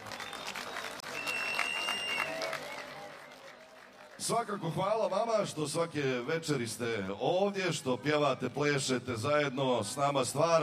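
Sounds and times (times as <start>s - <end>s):
festival crowd applauding at Zenica Summer Fest after folklore performances: 0.0s - 5.2s
high whistle-like tones: 0.1s - 2.4s
speech: 4.2s - 10.6s.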